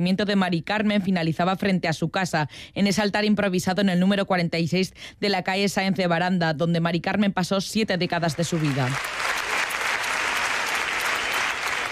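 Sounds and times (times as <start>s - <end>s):
speech: 0.0s - 9.2s
crowd applauding at a memorial protest march: 8.4s - 11.9s.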